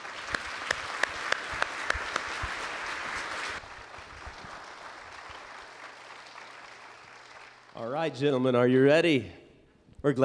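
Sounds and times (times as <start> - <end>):
audience applause: 0.0 - 7.7
speech: 7.8 - 9.4, 10.0 - 10.2.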